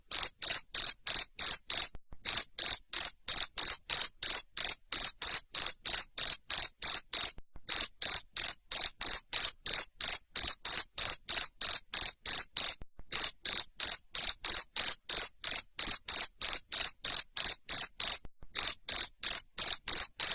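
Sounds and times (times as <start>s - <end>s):
cricket chirping: 0.1s - 20.3s
speech: 3.7s - 4.0s, 12.0s - 12.3s.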